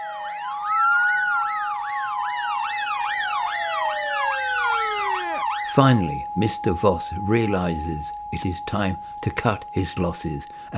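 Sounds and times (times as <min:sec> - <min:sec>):
Justice Facilitators electric scooter sirens approaching in the distance: 0:00.0 - 0:08.0
speech: 0:05.8 - 0:10.7.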